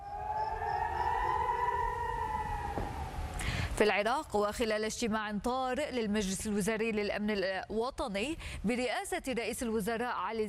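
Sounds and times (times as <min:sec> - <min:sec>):
air raid warning sirens: 0:00.0 - 0:03.4
speech: 0:03.8 - 0:10.4.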